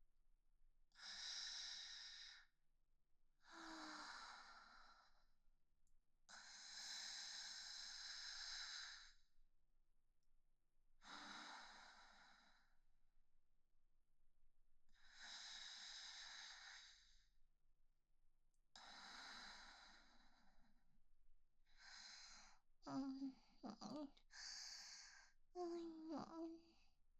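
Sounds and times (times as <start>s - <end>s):
woman breathing calmly in sleep beside her boyfriend: 1.0s - 2.5s, 3.4s - 5.3s, 6.3s - 9.2s, 11.0s - 12.8s, 15.0s - 17.3s, 18.8s - 20.8s, 21.6s - 26.8s.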